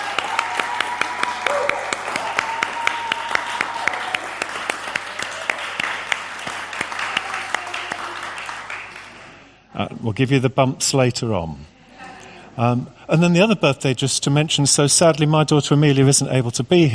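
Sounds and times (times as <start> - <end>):
audience applause: 0.0 - 9.5
speech: 9.8 - 11.8, 12.6 - 16.9.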